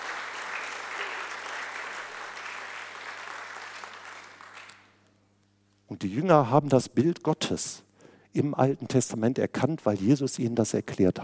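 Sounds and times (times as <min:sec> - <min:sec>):
audience applause: 0:00.0 - 0:04.9
speech: 0:05.9 - 0:11.2.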